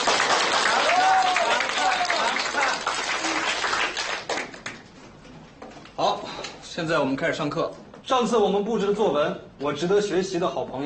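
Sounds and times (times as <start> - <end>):
classroom applause: 0.0 - 4.9
speech: 6.8 - 10.8.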